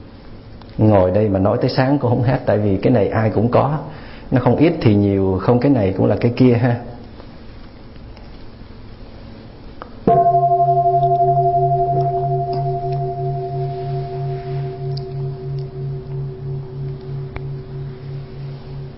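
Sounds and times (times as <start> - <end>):
speech: 0.8 - 7.0
large temple bell struck and ringing: 10.1 - 18.9.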